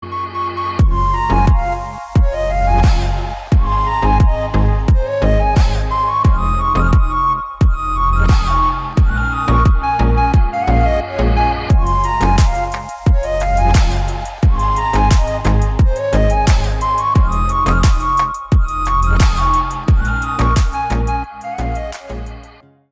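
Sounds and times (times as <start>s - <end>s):
instrumental music: 0.7s - 22.7s.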